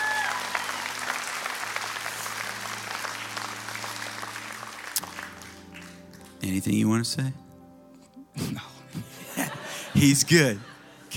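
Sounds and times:
audience cheering and applauding: 0.0s - 6.0s
speech: 6.4s - 7.4s, 10.0s - 11.1s
laughter: 8.9s - 11.1s.

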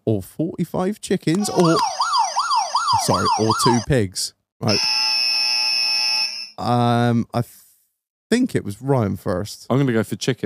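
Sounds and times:
speech: 0.1s - 2.2s, 2.9s - 5.1s, 6.6s - 7.6s, 8.3s - 10.4s
quiz buzzer pressed: 4.7s - 6.6s.

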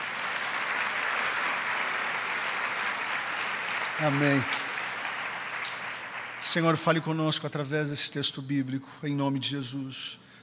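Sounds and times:
audience applause: 0.0s - 7.2s
speech: 4.0s - 4.6s, 6.4s - 10.3s.

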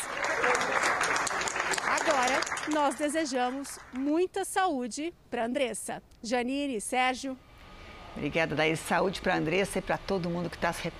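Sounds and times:
colleagues applauding: 0.0s - 4.1s
speech: 2.6s - 7.5s, 8.2s - 10.9s.

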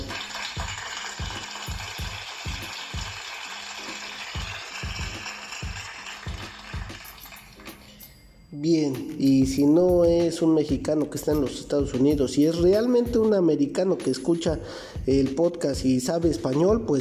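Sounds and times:
applause: 0.0s - 7.8s
speech: 8.6s - 16.9s.

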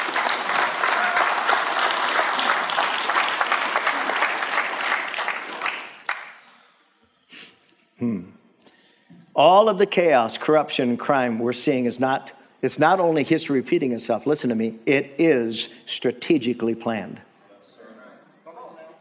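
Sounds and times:
audience applause: 0.0s - 6.4s
speech: 9.4s - 17.3s.

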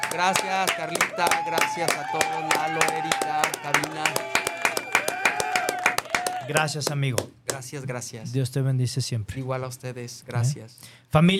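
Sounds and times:
people clapping: 0.0s - 7.8s
speech: 0.1s - 4.5s, 6.5s - 11.3s.

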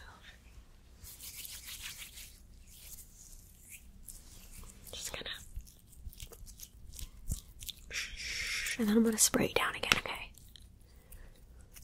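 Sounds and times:
facial scrub rubbed on skin: 0.9s - 9.1s
speech: 8.8s - 9.8s.

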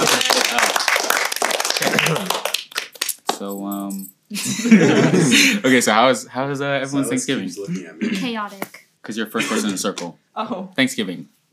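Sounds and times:
hand clapping: 0.0s - 4.0s
laughter: 1.7s - 2.4s, 4.4s - 5.9s
speech: 3.4s - 11.4s.

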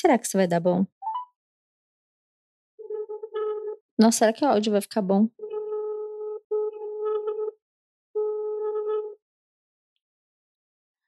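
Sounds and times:
speech: 0.0s - 1.0s, 4.0s - 5.5s
phone ringing tone: 2.8s - 3.8s, 5.4s - 7.6s, 8.2s - 9.2s.

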